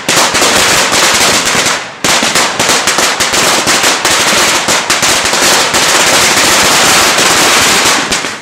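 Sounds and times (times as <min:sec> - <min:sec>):
firecrackers from Thailand: 0:00.0 - 0:08.4.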